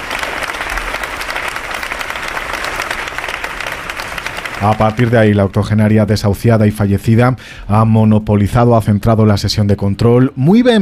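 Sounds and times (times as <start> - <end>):
ovation applause in parliament atrium: 0.0 - 5.6
speech: 4.6 - 10.8.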